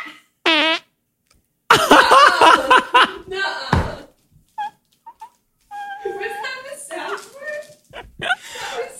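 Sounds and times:
fart into microphone: 0.5 - 0.9
laughter: 1.7 - 4.0, 7.9 - 8.9.

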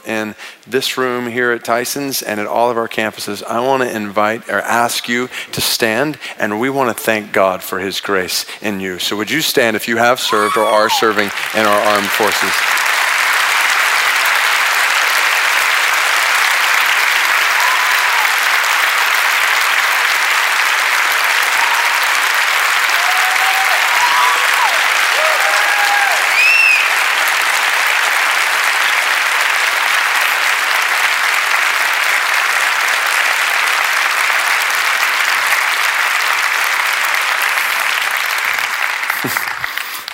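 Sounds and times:
speech: 0.1 - 12.8
audience standing applause: 10.3 - 40.1.

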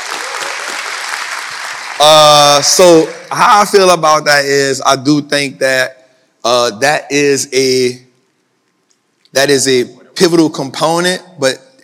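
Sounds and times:
small group clapping: 0.0 - 3.4
speech: 2.0 - 8.0, 9.3 - 11.6.

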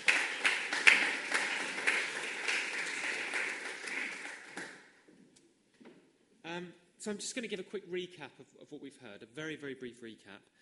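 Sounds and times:
audience applauding: 0.0 - 4.9
speech: 6.6 - 10.6.

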